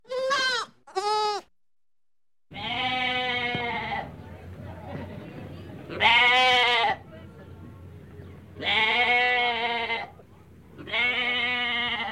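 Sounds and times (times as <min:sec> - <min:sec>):
goat kid bleating: 0:00.0 - 0:01.5, 0:02.5 - 0:04.1, 0:05.9 - 0:07.0, 0:08.6 - 0:10.1, 0:10.8 - 0:12.1.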